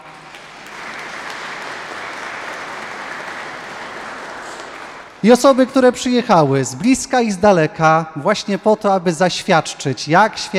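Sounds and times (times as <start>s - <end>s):
applause: 0.0s - 5.6s
speech: 5.2s - 10.5s.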